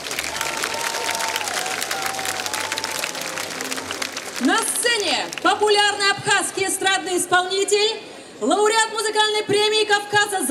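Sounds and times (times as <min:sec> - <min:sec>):
festival guests applauding Abkhaz contest participants: 0:00.0 - 0:05.6
faint crowd murmur: 0:00.0 - 0:10.4
speech: 0:04.4 - 0:10.4.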